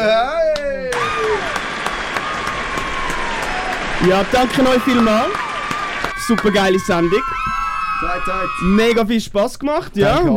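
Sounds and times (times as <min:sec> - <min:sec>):
applause: 0:00.5 - 0:08.0
speech: 0:04.0 - 0:05.4, 0:06.2 - 0:10.3.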